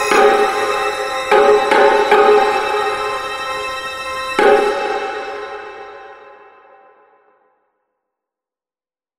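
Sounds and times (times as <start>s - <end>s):
tension music: 0.0s - 7.0s.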